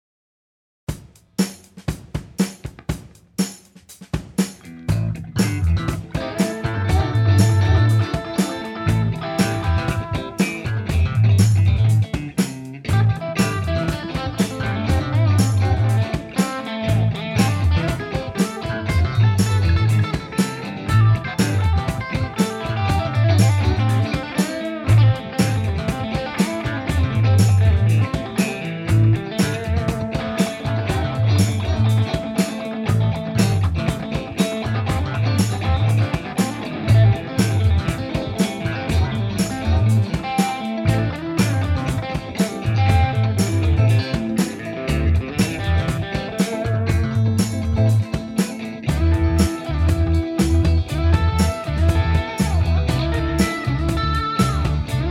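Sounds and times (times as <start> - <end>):
funky music: 0.9 - 55.0.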